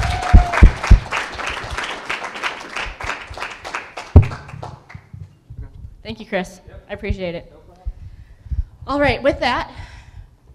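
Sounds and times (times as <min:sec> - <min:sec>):
applause: 0:00.0 - 0:05.1
speech: 0:06.1 - 0:07.6, 0:08.9 - 0:09.9.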